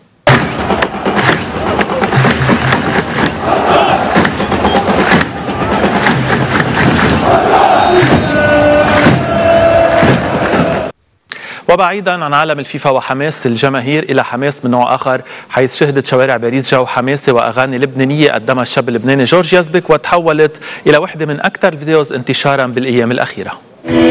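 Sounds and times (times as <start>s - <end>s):
sharp thumping bursts: 0.2s - 10.9s
Jordanian football fans shouting and chanting in the Roman amphitheatre in Amman: 0.5s - 11.0s
speech: 11.8s - 24.0s.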